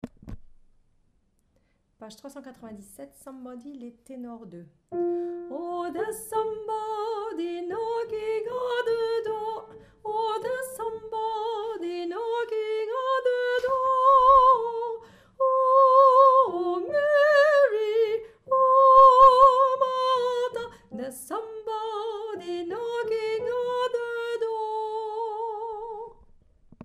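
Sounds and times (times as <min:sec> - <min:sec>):
tenor singing: 0:05.5 - 0:26.0.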